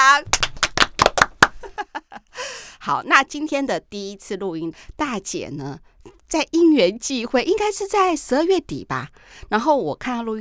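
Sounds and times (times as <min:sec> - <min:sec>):
hosts clapping: 0:00.3 - 0:01.7
speech: 0:02.8 - 0:10.3.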